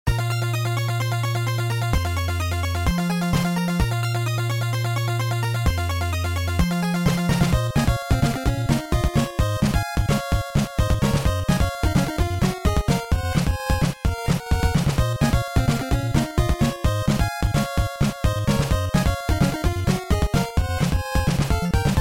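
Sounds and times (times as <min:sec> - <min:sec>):
theme music: 0:00.1 - 0:22.0.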